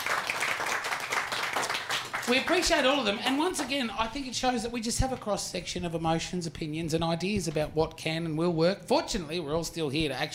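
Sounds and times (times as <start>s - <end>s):
round of applause: 0.0s - 3.7s
speech: 2.3s - 10.3s.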